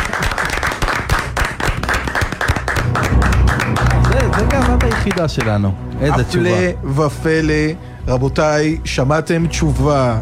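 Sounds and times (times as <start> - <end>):
hands clapping: 0.0 - 5.7
speech: 5.1 - 10.1.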